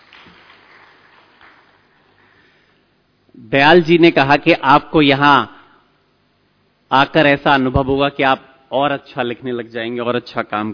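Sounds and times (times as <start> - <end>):
audience clapping: 0.0 - 2.4
speech: 3.4 - 5.6, 6.9 - 10.7.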